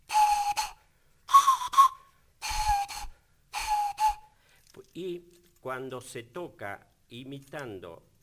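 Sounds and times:
Mapuche pifilca flute blasts: 0.0s - 4.4s
speech: 5.0s - 8.1s.

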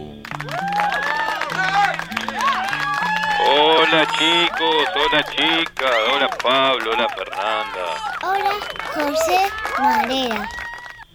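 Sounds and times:
crowd applause: 0.4s - 4.1s, 8.2s - 10.5s
speech: 3.9s - 10.6s.

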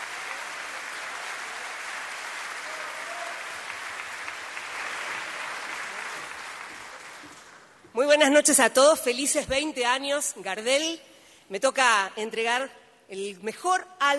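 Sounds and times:
crowd applauding: 0.0s - 7.8s
speech: 8.0s - 14.1s.

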